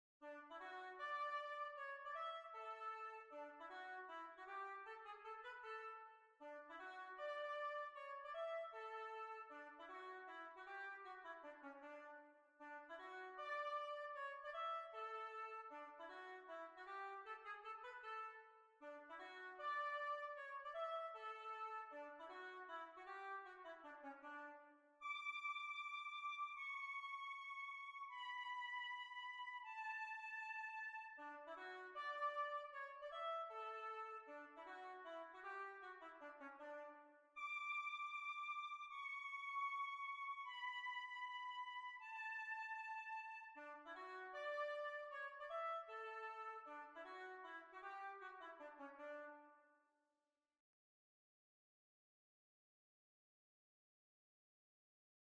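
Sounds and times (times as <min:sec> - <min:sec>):
hornpipe tune: 0:00.3 - 0:12.0, 0:12.6 - 0:49.4.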